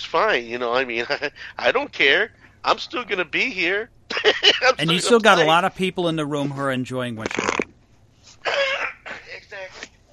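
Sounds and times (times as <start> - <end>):
speech: 0.1 - 7.8, 8.4 - 8.7
sneeze: 8.4 - 9.3.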